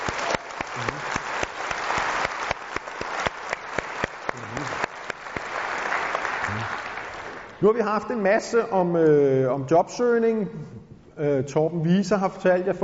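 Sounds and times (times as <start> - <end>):
audience applause: 0.0 - 7.6
speech: 7.6 - 12.8.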